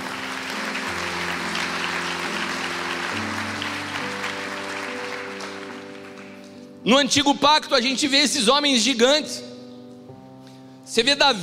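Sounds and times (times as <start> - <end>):
audience applause: 0.0 - 6.6
speech: 6.8 - 9.5, 10.9 - 11.4.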